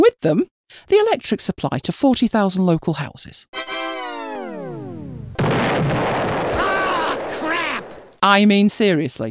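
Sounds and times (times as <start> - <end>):
speech: 0.1 - 3.6, 8.2 - 9.3
cooling towers demolished by explosives: 4.2 - 8.2.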